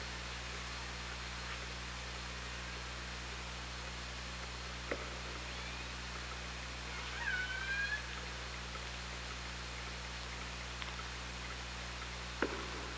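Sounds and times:
underwater hum and hiss: 0.0s - 12.9s
killer whale squeal: 6.9s - 8.2s.

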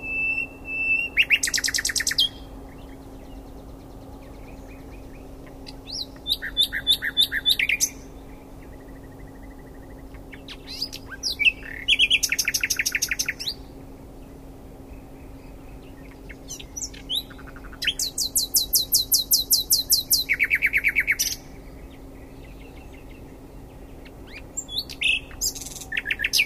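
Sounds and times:
common nightingale song: 0.0s - 26.4s
steady low hum: 0.0s - 26.4s.

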